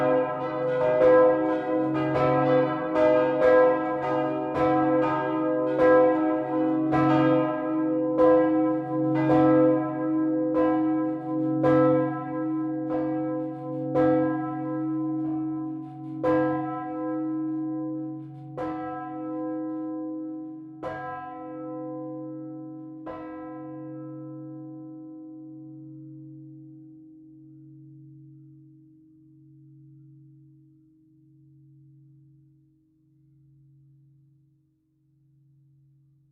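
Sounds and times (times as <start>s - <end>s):
church bells of the Ludwigskirche in Ansbach pealing: 0.0s - 26.2s.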